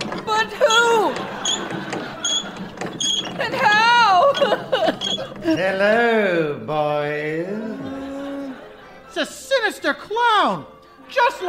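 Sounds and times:
creaking winch cranking a bucket up a well: 0.0 - 6.2
excited voices: 0.1 - 2.6, 3.2 - 11.4
laughter: 0.5 - 6.5, 7.2 - 9.4
speech: 5.5 - 7.7, 9.2 - 11.4.

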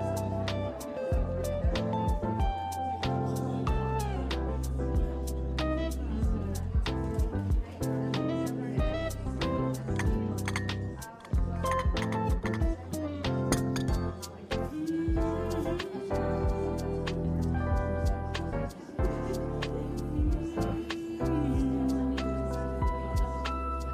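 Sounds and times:
murmur of voices in a coffee shop: 0.0 - 23.9
music playing: 0.0 - 23.9
cups and dishes clinking: 10.0 - 12.7, 13.5 - 14.2.

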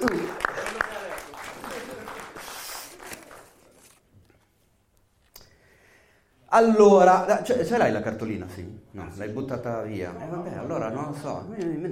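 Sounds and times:
audience applause: 0.0 - 4.0
speech: 6.6 - 11.9.

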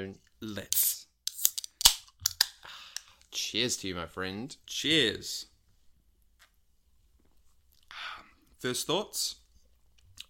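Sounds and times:
speech: 0.0 - 1.0, 3.4 - 5.5, 8.6 - 9.4
drink can being cracked open: 0.7 - 2.6.

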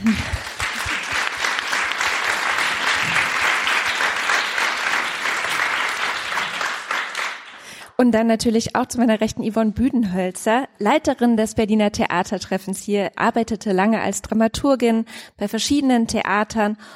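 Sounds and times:
audience applause: 0.0 - 7.7
speech: 8.0 - 16.9.

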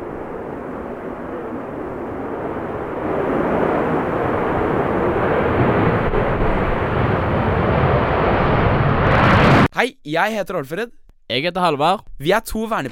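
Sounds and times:
F-35 fighter jet taking off: 0.0 - 9.7
speech: 9.8 - 12.9.

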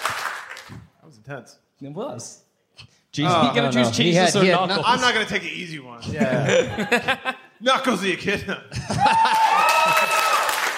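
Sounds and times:
audience clapping: 0.0 - 1.0, 8.9 - 10.7
speech: 1.3 - 10.0
laughter: 6.0 - 10.4
audience whooping: 9.0 - 10.7.

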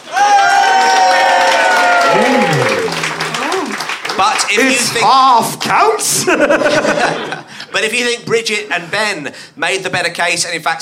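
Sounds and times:
whooping cheers and shouting voices: 0.0 - 3.8
audience applause: 0.0 - 5.6
laughter: 2.0 - 3.8, 6.0 - 7.9
speech: 4.5 - 10.8.

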